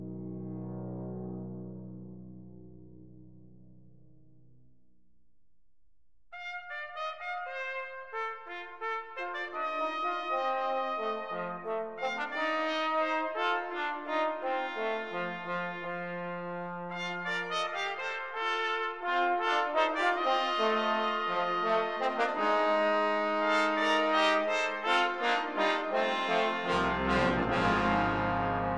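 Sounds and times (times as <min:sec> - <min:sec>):
brass ensemble fanfare: 0:06.4 - 0:28.7.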